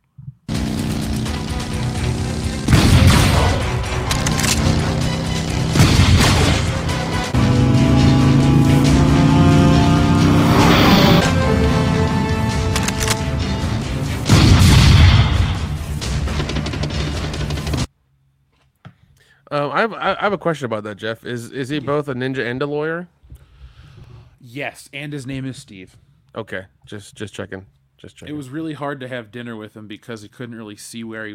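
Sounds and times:
booming metallic hits from a Terminator-themed sound effect button: 0.5 - 17.0
sustained droning synthesized tones from a sound effect button: 4.7 - 14.2
speech: 19.8 - 23.2, 24.4 - 31.3.

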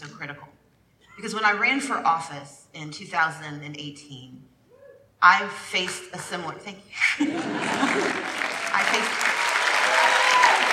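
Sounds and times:
speech: 1.2 - 4.5, 5.2 - 9.3
laughter: 7.0 - 8.6
audience applause: 7.4 - 10.7.

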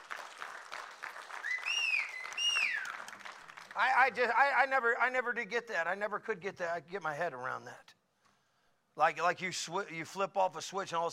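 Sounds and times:
audience applauding: 0.0 - 4.1
speech: 3.8 - 7.9, 9.0 - 11.1.

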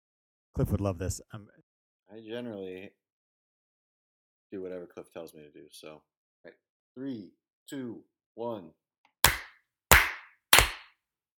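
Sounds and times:
speech: 0.6 - 3.0, 4.5 - 8.8
sharp hand claps: 9.2 - 10.9.

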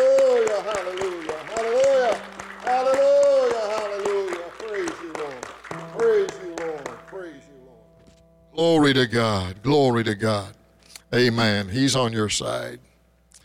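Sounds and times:
loud voice shouting or chanting: 0.0 - 4.4
audience clapping and applause: 0.0 - 7.7
speech: 8.9 - 12.9.

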